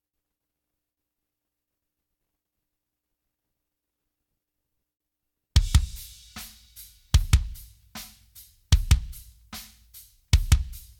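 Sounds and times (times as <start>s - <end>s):
drums: 5.6s - 10.9s.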